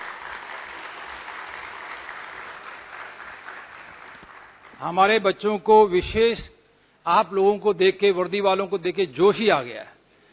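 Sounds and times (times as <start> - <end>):
loud audience applause: 0.0 - 4.8
speech: 4.8 - 6.5, 7.1 - 10.0.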